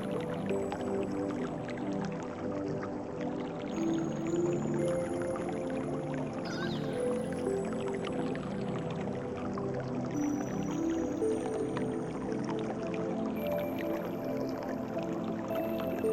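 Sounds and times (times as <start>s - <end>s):
calming nature water sounds: 0.0s - 16.1s
peaceful relaxing music: 0.0s - 16.1s.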